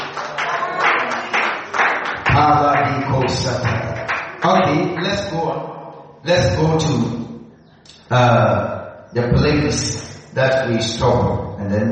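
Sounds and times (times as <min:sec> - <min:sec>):
congregation clapping hands during a church service: 0:00.0 - 0:05.4
speech: 0:04.4 - 0:07.2, 0:08.1 - 0:11.9.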